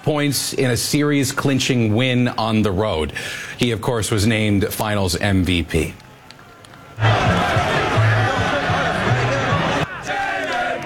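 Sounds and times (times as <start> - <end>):
speech: 0.1 - 6.0
crowds celebrating in the streets of New York: 6.2 - 10.8.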